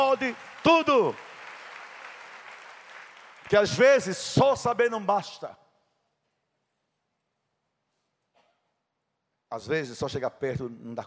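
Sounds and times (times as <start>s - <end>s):
audience applause: 0.0s - 4.1s
speech: 0.1s - 1.3s, 3.5s - 5.6s, 9.5s - 11.0s.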